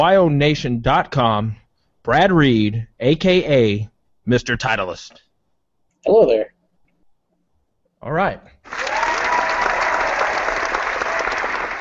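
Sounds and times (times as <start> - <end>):
speech: 0.0 - 5.2, 6.0 - 6.6, 8.0 - 8.9
canned studio-audience applause on a college football talk show: 8.6 - 11.7.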